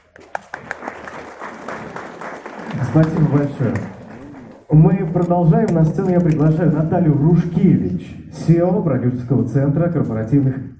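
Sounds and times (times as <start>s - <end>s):
audience applause at a conference of PR specialists: 0.0s - 5.3s
speech: 2.8s - 4.0s, 4.7s - 10.7s.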